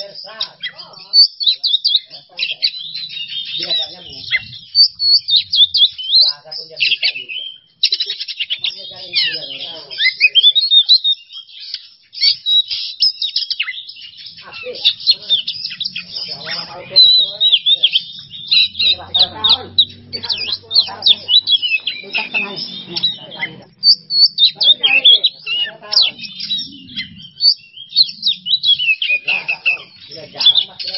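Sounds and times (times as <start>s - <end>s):
Oriental magpie-robin song: 0.0s - 30.9s
speech: 1.3s - 4.6s, 6.2s - 10.6s, 14.5s - 23.8s, 24.4s - 28.3s, 29.2s - 30.9s.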